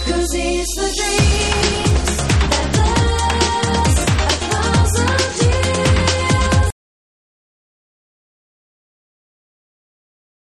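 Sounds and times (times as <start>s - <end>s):
DJ extended breakbeat mix: 0.0s - 6.7s.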